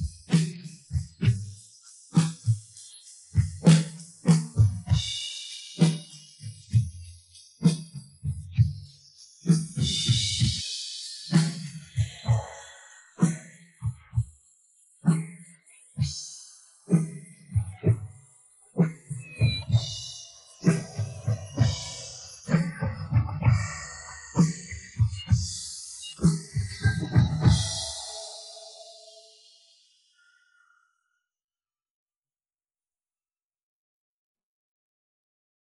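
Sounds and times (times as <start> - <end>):
drums: 0.0 - 14.4, 15.0 - 18.2, 18.8 - 29.6.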